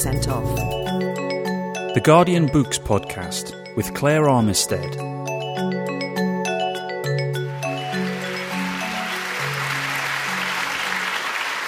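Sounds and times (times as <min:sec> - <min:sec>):
speech: 0:00.0 - 0:01.0, 0:02.0 - 0:05.2
run of musical notes: 0:00.0 - 0:04.0, 0:04.8 - 0:10.9
audience applause welcoming author David Mitchell at a live books event: 0:08.2 - 0:11.6.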